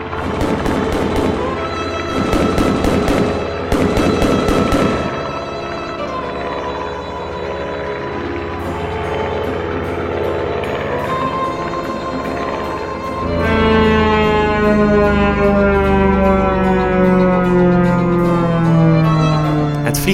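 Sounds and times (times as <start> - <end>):
steady low droning hum: 0.0 - 19.8
gunfire at an aircraft: 0.1 - 5.5.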